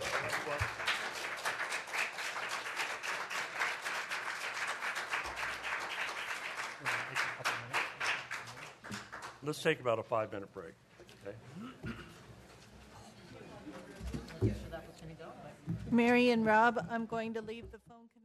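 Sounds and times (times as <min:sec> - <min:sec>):
audience applause after motion approved: 0:00.0 - 0:09.4
speech: 0:09.4 - 0:12.0, 0:14.4 - 0:18.2.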